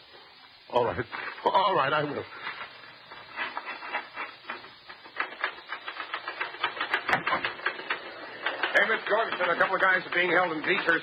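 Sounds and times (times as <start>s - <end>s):
speech: 1.0s - 2.6s, 9.1s - 11.0s
typewriter clattering: 5.1s - 11.0s.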